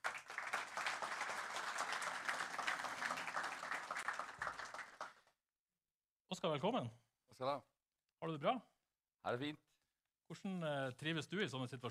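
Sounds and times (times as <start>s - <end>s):
audience applause: 0.0s - 5.3s
speech: 6.4s - 9.7s, 10.3s - 11.8s.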